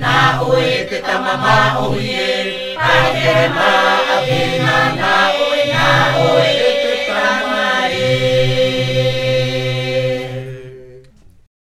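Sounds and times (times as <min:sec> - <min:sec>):
Maohi polyphonic himene tarava chants: 0:00.0 - 0:11.3.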